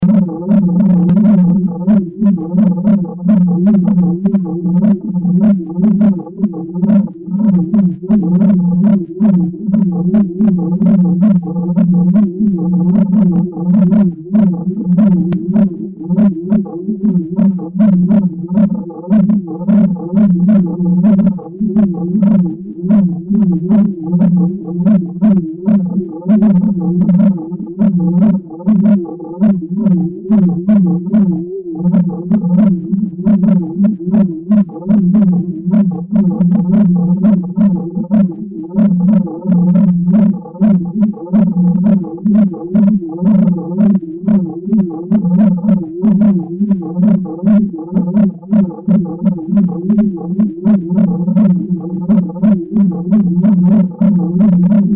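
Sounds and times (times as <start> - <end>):
cricket chirping: 0.0 - 54.9.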